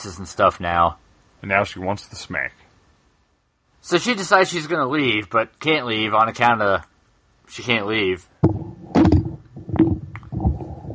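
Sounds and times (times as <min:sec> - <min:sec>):
speech: 0:00.0 - 0:02.6, 0:03.8 - 0:06.9, 0:07.5 - 0:08.6
microphone being knocked over: 0:08.4 - 0:10.9.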